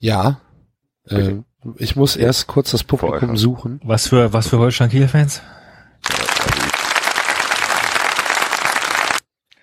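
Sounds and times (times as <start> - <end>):
speech: 0.0 - 0.4, 1.0 - 6.2
applause sound effect: 6.0 - 9.2.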